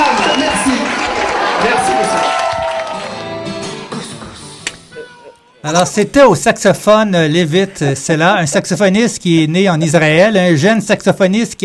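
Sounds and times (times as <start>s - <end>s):
audience applause: 0.0s - 4.0s
speech: 5.6s - 11.6s.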